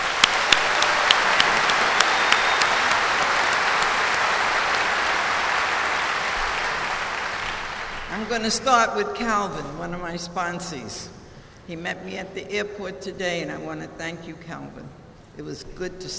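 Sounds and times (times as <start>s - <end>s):
audience applause: 0.0s - 8.3s
speech: 8.3s - 16.1s.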